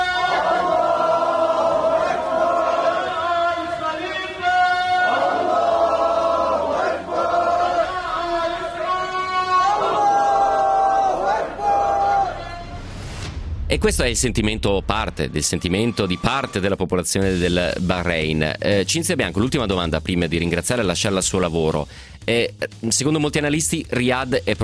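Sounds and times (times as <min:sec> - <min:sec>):
street protest crowd chanting: 0:00.1 - 0:12.8
speech: 0:13.8 - 0:24.6.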